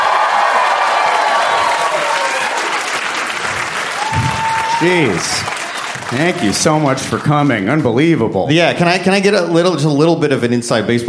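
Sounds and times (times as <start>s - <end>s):
cheers and whoops: 0.0s - 6.6s
large live audience applause: 0.0s - 8.1s
speech: 4.8s - 11.0s.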